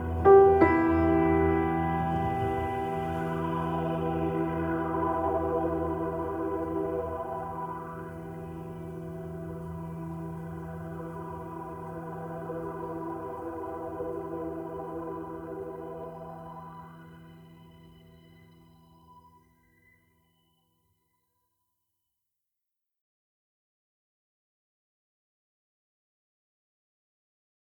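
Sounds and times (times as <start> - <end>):
piano: 0.0 - 20.4
ambience: 0.0 - 20.5.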